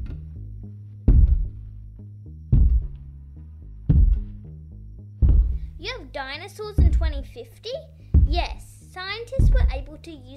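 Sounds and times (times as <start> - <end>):
heavy footsteps: 1.1 - 1.7, 2.5 - 3.1, 3.8 - 4.5, 5.2 - 5.8, 6.8 - 7.2, 8.1 - 8.6, 9.4 - 9.9
steady low humming background: 1.1 - 5.8
speech: 5.8 - 10.3.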